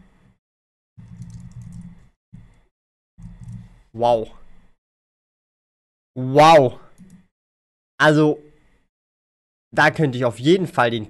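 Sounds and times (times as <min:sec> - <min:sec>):
typing on a computer keyboard: 0:01.1 - 0:01.9
speech: 0:03.9 - 0:04.4, 0:06.2 - 0:06.8, 0:08.0 - 0:08.5, 0:09.7 - 0:11.0.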